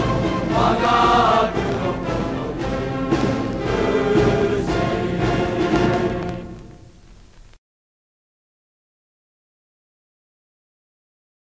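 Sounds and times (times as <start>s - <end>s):
cheering song: 0.0s - 6.6s.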